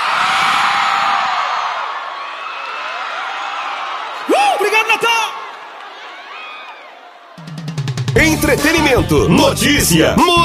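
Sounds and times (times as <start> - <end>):
large concert crowd shouting, whooping and cheering: 0.0 - 10.4
speech: 8.4 - 10.4.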